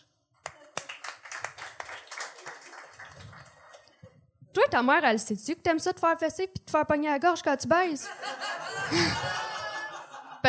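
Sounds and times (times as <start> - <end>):
scattered audience applause: 0.4 - 4.0
speech: 4.6 - 9.5
laughter: 8.0 - 10.4.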